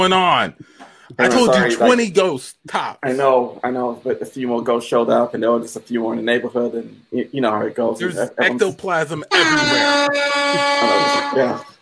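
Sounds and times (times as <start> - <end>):
speech: 0.0 - 11.7
loud sustained air horn blast: 9.3 - 11.8.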